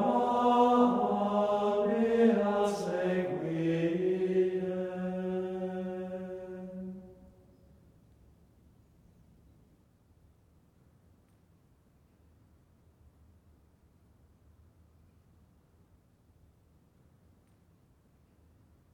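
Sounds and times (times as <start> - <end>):
choir chanting an antiphon: 0.0 - 7.5.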